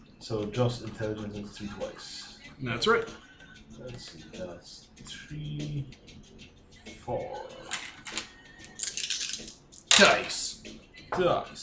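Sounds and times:
speech: 0.2s - 7.7s, 9.4s - 11.6s
dice rolling across a hard surface: 7.7s - 10.2s.

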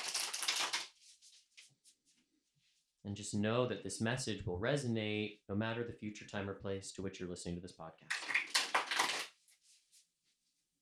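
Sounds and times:
tarot cards being shuffled: 0.0s - 1.2s, 8.1s - 9.3s
speech: 3.0s - 8.3s.

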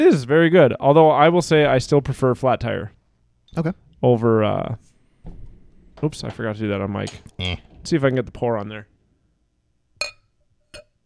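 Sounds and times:
speech: 0.0s - 5.4s, 6.0s - 8.9s
glasses banging together clinking: 7.0s - 7.9s, 10.0s - 11.0s.

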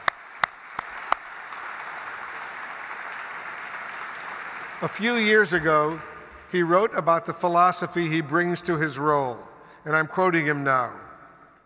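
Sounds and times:
round of applause: 0.0s - 6.4s
speech: 4.8s - 11.0s.

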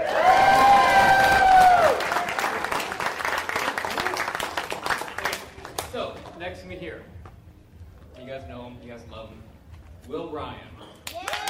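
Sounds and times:
audience cheering loudly: 0.0s - 2.9s, 11.1s - 11.4s
audience clapping: 0.0s - 6.4s, 11.0s - 11.4s.

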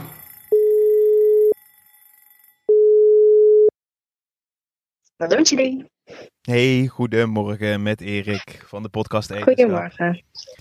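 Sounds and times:
telephone line ringing tone while placing a call: 0.2s - 3.8s
speech: 5.2s - 10.6s.

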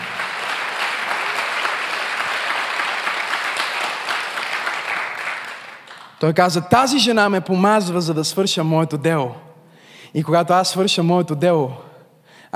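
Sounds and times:
audience applause: 0.0s - 6.2s
speech: 6.2s - 9.5s, 10.1s - 11.9s.

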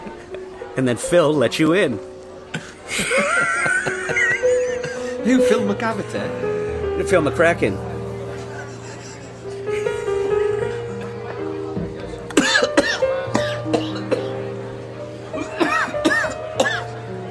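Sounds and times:
laughter: 0.0s - 0.7s, 2.5s - 5.8s, 8.1s - 12.6s, 15.3s - 16.4s
speech: 0.8s - 2.1s, 5.2s - 7.9s
coughing after something went down the wrong way: 2.5s - 5.2s, 12.3s - 14.3s, 15.4s - 17.0s.

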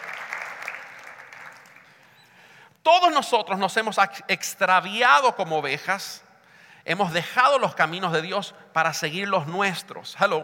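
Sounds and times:
audience applauding: 0.0s - 2.2s
speech: 2.8s - 6.2s, 6.8s - 10.4s.

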